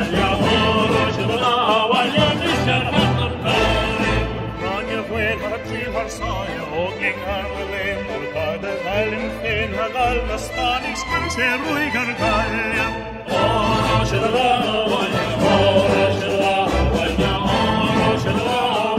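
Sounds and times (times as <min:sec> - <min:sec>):
Irish Civil War folk song: 0:00.0 - 0:18.9.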